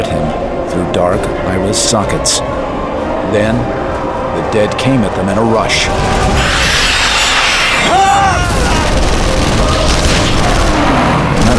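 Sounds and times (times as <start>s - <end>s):
speech: 0.0s - 6.7s
warbling whine: 0.3s - 11.5s
dense wall of roaring noise: 5.5s - 11.5s
sharp cracks: 5.9s - 11.5s
heavy shotgun blasts: 8.4s - 11.5s.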